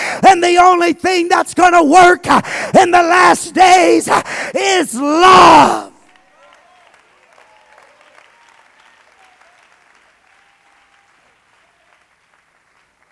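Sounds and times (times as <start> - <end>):
speech: 0.2 - 5.8
audience clapping: 6.0 - 13.0.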